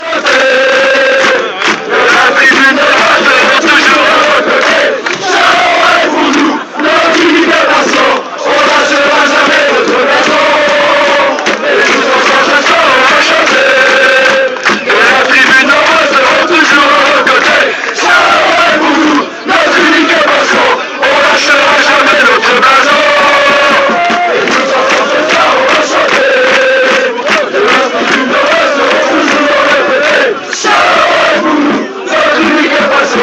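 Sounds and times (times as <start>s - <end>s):
people singing together: 0.0s - 33.2s.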